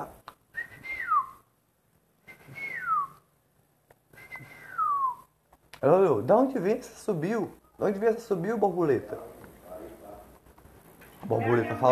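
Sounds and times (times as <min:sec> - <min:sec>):
speech: 0:00.0 - 0:00.2, 0:05.8 - 0:09.3, 0:11.3 - 0:11.8
person whistling a little bird's call: 0:00.6 - 0:01.4, 0:02.3 - 0:03.3, 0:04.2 - 0:05.3.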